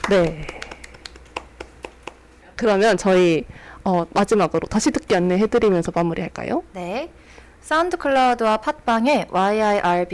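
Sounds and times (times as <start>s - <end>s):
clapping hands: 0.0s - 2.7s
speech: 0.1s - 0.6s, 2.6s - 10.1s.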